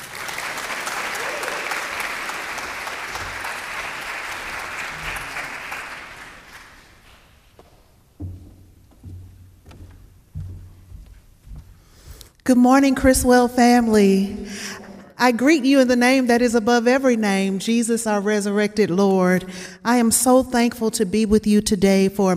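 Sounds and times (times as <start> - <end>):
audience applause welcoming speaker: 0.0 - 7.3
shuffling: 6.6 - 12.4
speech: 12.5 - 22.3.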